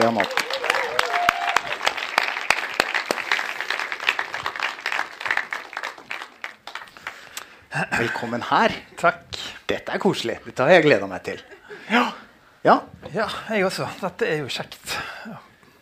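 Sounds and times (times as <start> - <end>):
speech: 0.0 - 0.5, 8.0 - 15.5
warm audience applause: 0.0 - 7.4
laughter: 7.7 - 8.7, 11.2 - 12.3.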